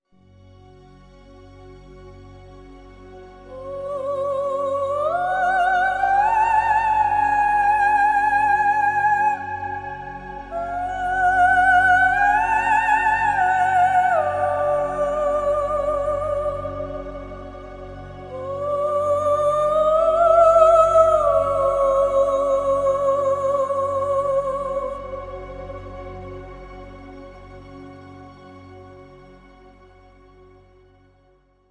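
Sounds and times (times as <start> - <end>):
lyrical vocal phrases: 3.4 - 26.8.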